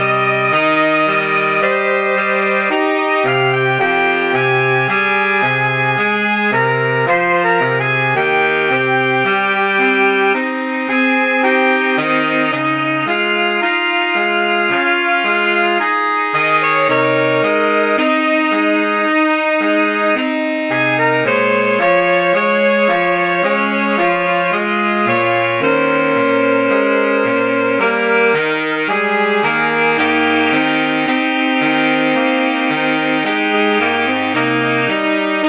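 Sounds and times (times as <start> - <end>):
saxophone quartet playing: 0.0 - 35.4.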